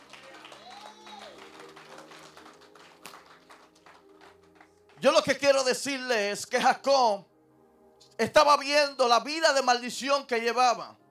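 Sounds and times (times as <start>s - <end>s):
audience applause: 0.0s - 5.0s
speech: 5.0s - 7.3s, 8.2s - 11.0s.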